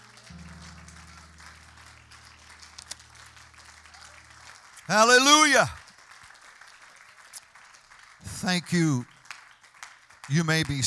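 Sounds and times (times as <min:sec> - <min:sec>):
sustained low musical chord: 0:00.0 - 0:04.9
audience clapping: 0:00.0 - 0:10.8
speech: 0:04.9 - 0:05.8, 0:08.4 - 0:09.1, 0:10.3 - 0:10.8.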